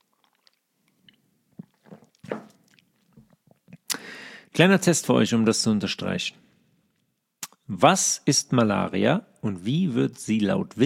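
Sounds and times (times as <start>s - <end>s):
person taking a quick sip of water: 0.0s - 4.1s
speech: 4.6s - 6.4s, 7.8s - 10.8s.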